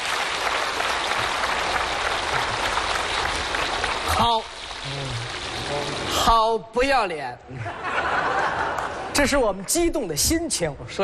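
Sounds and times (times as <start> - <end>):
audience applause: 0.0 - 6.2
speech: 6.3 - 8.6, 9.2 - 11.0
laughter: 7.5 - 9.1.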